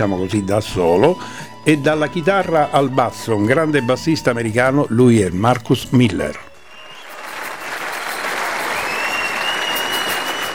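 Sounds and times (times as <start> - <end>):
speech: 0.0 - 6.5
audience applause at live concert: 6.2 - 10.5.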